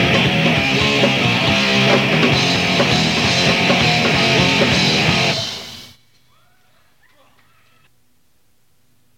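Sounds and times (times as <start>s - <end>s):
instrumental music: 0.0s - 5.9s.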